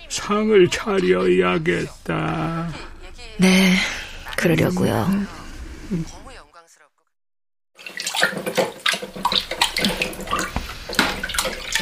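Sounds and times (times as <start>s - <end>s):
speech: 0.2s - 6.2s
water running from a tap: 7.8s - 11.8s.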